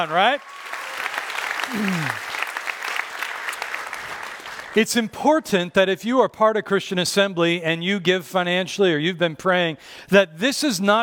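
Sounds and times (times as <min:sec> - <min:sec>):
speech: 0:00.0 - 0:00.6, 0:01.7 - 0:02.3, 0:04.7 - 0:11.0
audience applause: 0:00.0 - 0:04.8.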